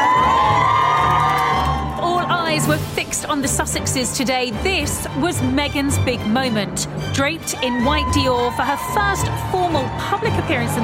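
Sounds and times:
crowd cheering: 0:00.0 - 0:02.7, 0:07.5 - 0:10.8
speech: 0:02.6 - 0:10.8.

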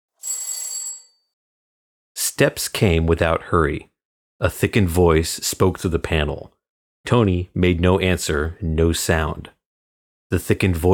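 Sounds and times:
doorbell ringing: 0:00.2 - 0:01.3
speech: 0:02.4 - 0:09.6, 0:10.3 - 0:10.9.

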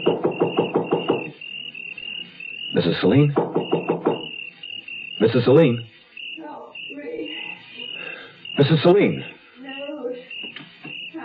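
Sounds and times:
knocking on a door: 0:00.0 - 0:01.4, 0:03.3 - 0:04.3
speech: 0:02.8 - 0:03.4, 0:05.2 - 0:05.9, 0:08.6 - 0:09.3.

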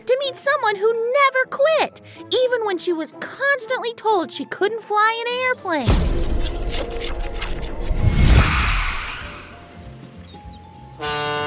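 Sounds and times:
speech: 0:00.3 - 0:07.3
rumbling crash-like surge: 0:05.9 - 0:09.8
ship horn blast: 0:11.0 - 0:11.4.

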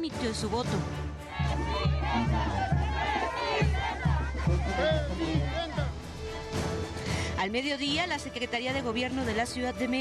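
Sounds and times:
speech: 0:00.0 - 0:02.8, 0:04.8 - 0:05.6, 0:07.4 - 0:09.9
crowd shouting and cheering: 0:01.0 - 0:07.0.

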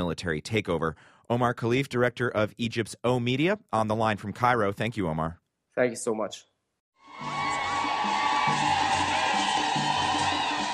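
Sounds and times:
speech: 0:00.0 - 0:06.5
ecstatic crowd cheering a welcome in Tanzania: 0:07.0 - 0:10.7.

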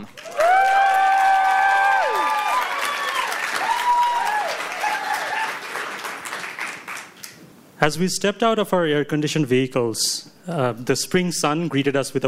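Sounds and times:
audience round of applause: 0:00.0 - 0:07.4
speech: 0:07.9 - 0:12.2.

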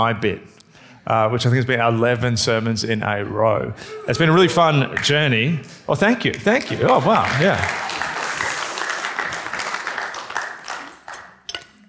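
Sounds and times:
speech: 0:00.0 - 0:07.9
audience clapping: 0:06.2 - 0:11.5.

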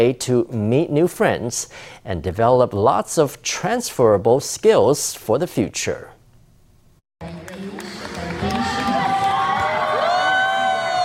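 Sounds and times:
speech: 0:00.0 - 0:06.2
crowd cheering at medal announcement: 0:07.2 - 0:11.0
high-pitched whoops and excited voices: 0:08.4 - 0:11.0.

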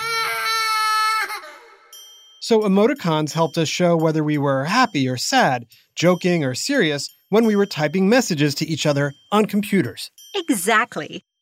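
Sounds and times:
baby crying: 0:00.0 - 0:02.0
speech: 0:02.5 - 0:11.3.

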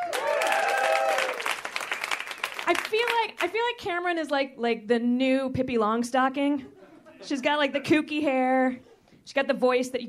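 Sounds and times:
audience whooping: 0:00.0 - 0:02.2
audience clapping for a comedian: 0:00.0 - 0:03.6
speech: 0:02.7 - 0:10.0.

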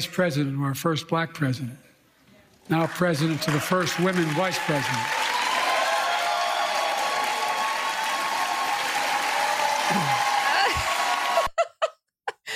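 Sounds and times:
speech: 0:00.0 - 0:01.9, 0:02.7 - 0:05.2
clapping and applause: 0:02.6 - 0:11.6.

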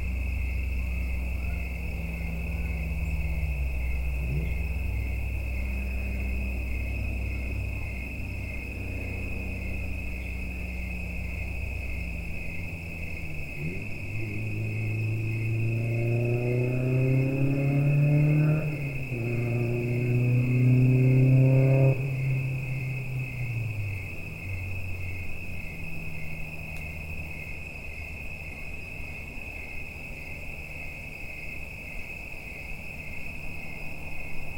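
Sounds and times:
vehicle engine rumble passing: 0:00.0 - 0:27.3
autumn insects trilling on Watts Ranch: 0:00.0 - 0:34.5.

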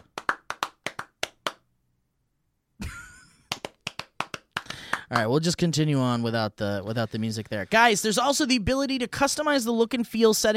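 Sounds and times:
rhythmic hand claps substituting for music: 0:00.0 - 0:01.6, 0:03.0 - 0:05.4
speech: 0:05.1 - 0:10.5.

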